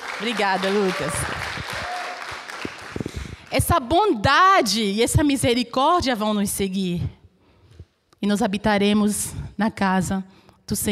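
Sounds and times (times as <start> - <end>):
audience applause: 0.0 - 3.5
speech: 0.2 - 1.4, 3.5 - 7.2, 8.2 - 10.9.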